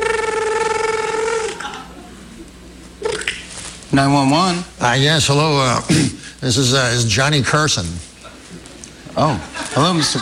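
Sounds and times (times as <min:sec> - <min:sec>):
voice imitating a phone ringing: 0:00.0 - 0:01.7
laughter: 0:01.2 - 0:02.4, 0:08.2 - 0:10.2
speech: 0:03.9 - 0:08.1, 0:09.2 - 0:10.2.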